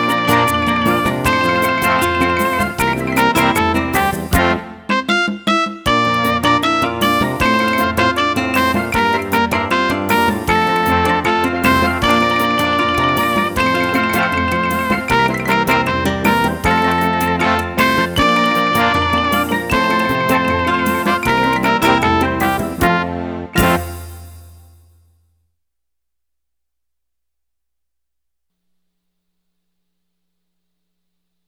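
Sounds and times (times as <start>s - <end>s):
keyboard prep intro: 0.0s - 24.5s.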